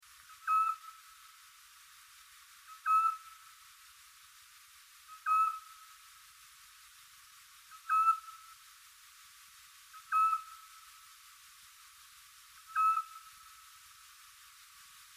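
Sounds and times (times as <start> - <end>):
Eurasian scops owl giving a clear whistled note: 0.4 - 0.9, 2.8 - 3.3, 5.2 - 5.7, 7.8 - 8.4, 10.0 - 10.6, 12.7 - 13.2.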